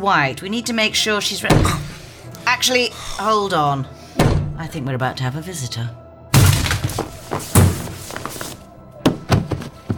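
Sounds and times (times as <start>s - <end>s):
speech: 0.0s - 4.0s, 4.6s - 6.0s
door being smashed in: 1.5s - 2.0s, 4.2s - 4.6s, 6.4s - 8.3s
debris splintering and clattering: 6.4s - 8.2s.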